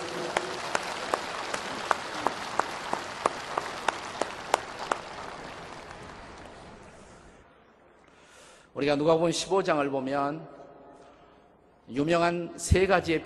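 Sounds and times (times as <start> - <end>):
audience applause: 0.0 - 7.4
speech: 8.8 - 10.6, 11.9 - 13.2.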